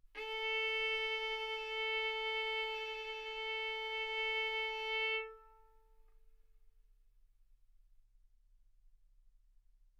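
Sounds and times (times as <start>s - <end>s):
violin arco on A string: 0.1s - 6.0s.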